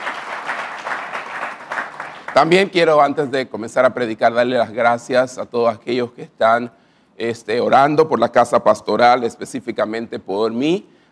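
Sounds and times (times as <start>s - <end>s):
audience applause: 0.0s - 2.7s
speech: 2.3s - 11.0s.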